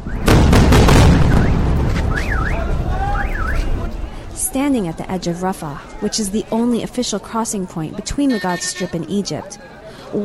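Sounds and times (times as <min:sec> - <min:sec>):
bombs exploding overhead in Rafah: 0:00.0 - 0:04.8
speech: 0:04.5 - 0:10.2.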